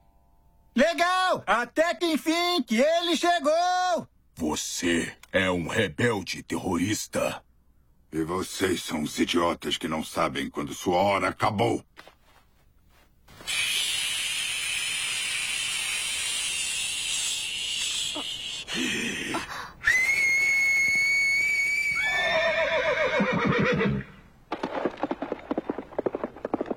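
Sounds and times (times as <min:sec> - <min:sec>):
hiss: 0:00.0 - 0:26.7
speech: 0:00.8 - 0:07.5, 0:08.1 - 0:12.1, 0:18.7 - 0:19.5
horse neighing: 0:22.0 - 0:24.2
hooves clip-clopping: 0:24.5 - 0:26.7.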